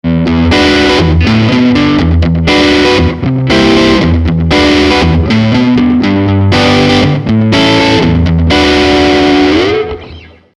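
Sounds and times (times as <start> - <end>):
Ibanez AF-75 guitar with overdrive: 0.0 - 10.5.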